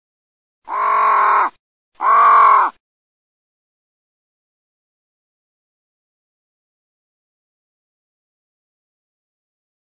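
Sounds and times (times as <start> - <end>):
crow cawing: 0.7 - 2.8.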